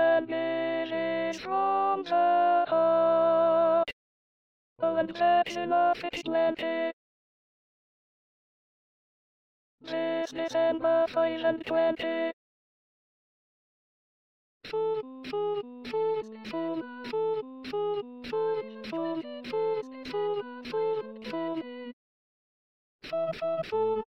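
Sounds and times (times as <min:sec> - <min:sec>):
alto voice singing an SATB choral part: 0:00.0 - 0:03.9, 0:04.8 - 0:06.9, 0:09.9 - 0:12.3, 0:14.8 - 0:21.9.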